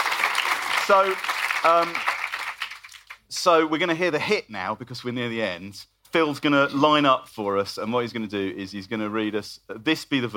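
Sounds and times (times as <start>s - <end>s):
audience applause: 0.0s - 3.2s
speech: 0.9s - 2.1s, 3.3s - 10.3s.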